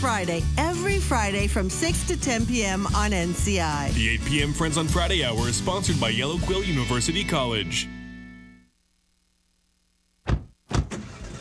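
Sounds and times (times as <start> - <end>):
speech: 0.0 - 8.0
loud thump: 10.2 - 11.0.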